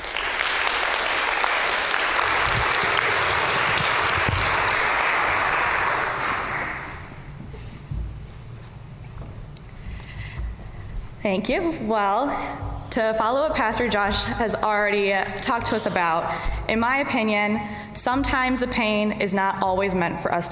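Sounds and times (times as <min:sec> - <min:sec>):
audience applause: 0:00.0 - 0:07.3
speech: 0:11.2 - 0:20.5.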